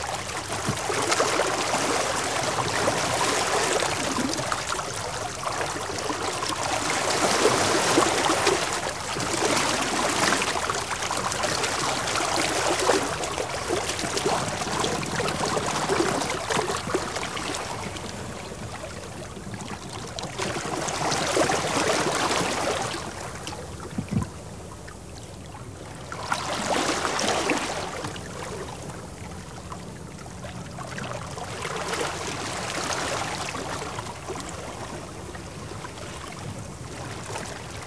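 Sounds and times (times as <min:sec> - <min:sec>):
water filling tide pools: 0:00.0 - 0:37.8.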